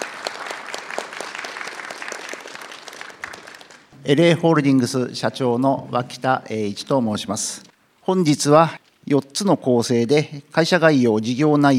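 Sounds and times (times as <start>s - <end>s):
audience applause: 0.0s - 3.9s
speech: 4.0s - 11.7s.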